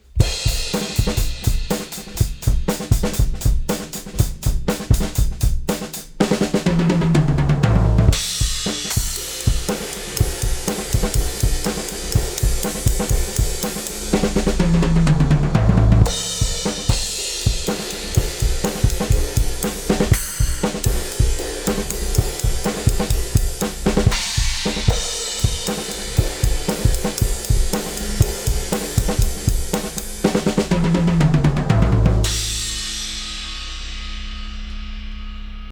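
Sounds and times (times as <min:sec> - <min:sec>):
drums through a drum bus: 0:00.0 - 0:35.6.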